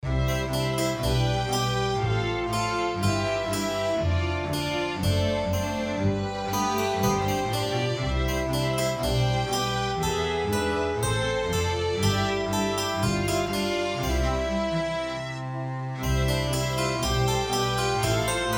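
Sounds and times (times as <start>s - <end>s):
harpsichord modern classical: 0.0s - 18.5s.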